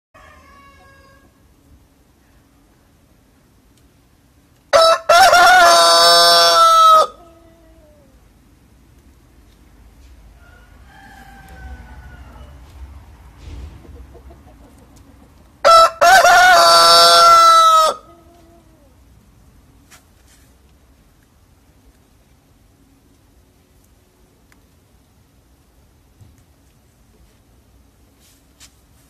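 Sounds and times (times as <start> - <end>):
rooster crowing: 0.2 - 1.4, 4.7 - 8.0, 10.3 - 12.9, 15.6 - 18.9.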